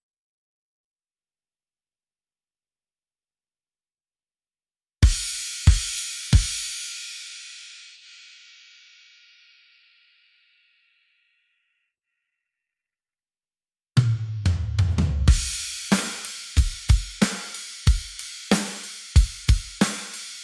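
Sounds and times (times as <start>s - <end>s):
drums: 5.0s - 8.6s, 14.0s - 20.4s.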